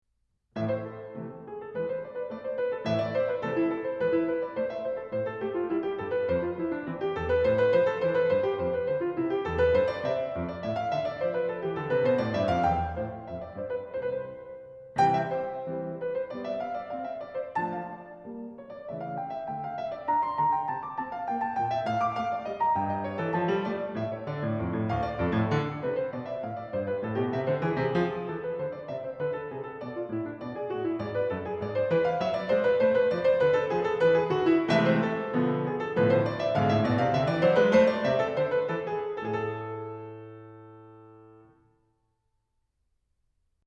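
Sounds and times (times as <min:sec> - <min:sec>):
scherzo music: 0:00.6 - 0:41.4.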